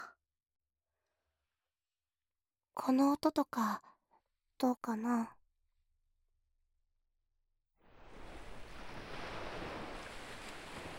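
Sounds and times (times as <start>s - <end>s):
speech: 2.8s - 3.9s, 4.6s - 5.4s
waves washing onto a sandy beach: 7.8s - 10.9s.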